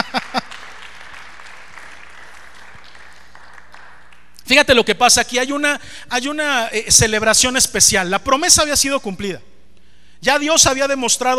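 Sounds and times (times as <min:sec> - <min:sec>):
laughter: 0:00.0 - 0:00.5
audience applauding: 0:00.0 - 0:04.4
speech: 0:04.5 - 0:09.5, 0:10.2 - 0:11.3.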